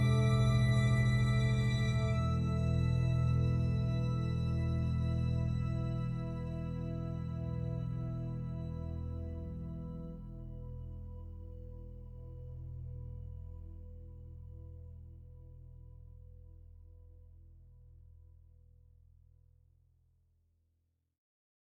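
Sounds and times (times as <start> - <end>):
sad music loop: 0.0 - 14.6.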